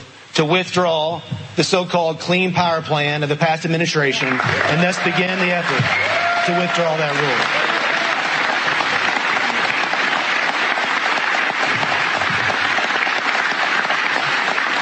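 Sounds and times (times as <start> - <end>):
speech: 0.4 - 7.7
crowd applause in standing ovation: 4.0 - 14.8.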